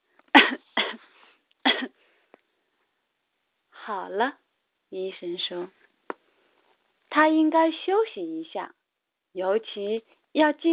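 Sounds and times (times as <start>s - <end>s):
coughing: 0.3s - 2.0s
speech: 3.9s - 5.8s, 7.1s - 10.7s.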